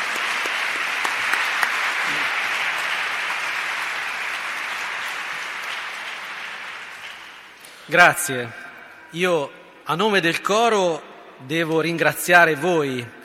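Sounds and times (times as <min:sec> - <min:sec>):
audience applause: 0:00.0 - 0:07.9
speech: 0:07.9 - 0:13.2.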